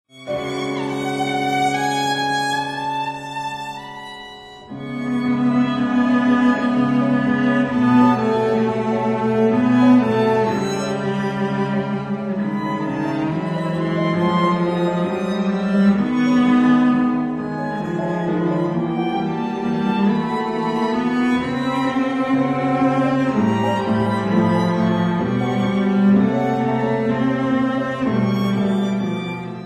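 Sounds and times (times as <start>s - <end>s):
andante for violin and cello: 0.1s - 29.6s.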